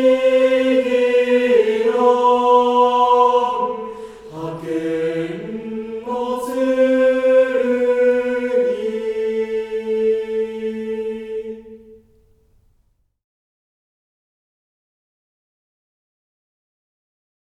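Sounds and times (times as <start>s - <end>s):
mixed choir singing: 0.0s - 12.2s.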